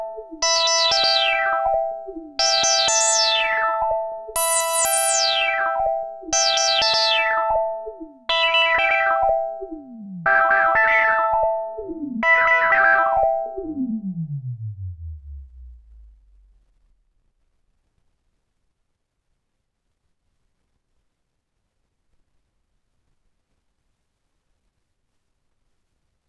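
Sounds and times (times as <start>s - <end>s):
JUNO-106 synthesizer: 0.0s - 17.1s.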